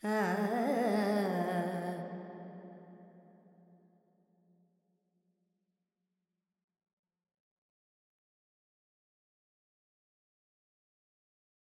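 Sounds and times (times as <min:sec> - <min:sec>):
Carnatic female alap in Lydian with reverb: 0:00.0 - 0:02.4.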